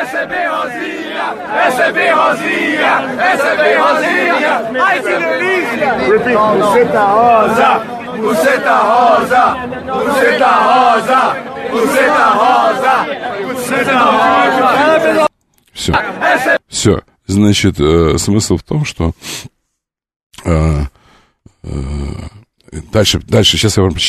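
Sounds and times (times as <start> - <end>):
football fans chanting in a crowd: 0.0 - 15.3, 15.9 - 16.7
crowd cheering: 0.0 - 16.6
speech: 0.2 - 19.6, 20.4 - 21.0, 21.6 - 24.0.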